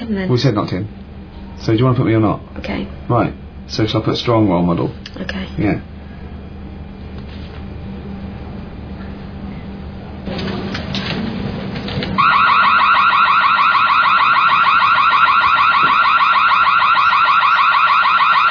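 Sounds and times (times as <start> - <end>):
noise: 0.0 - 12.2
speech: 0.1 - 1.0, 1.6 - 5.9
electronic alarm during a drill: 12.2 - 18.4.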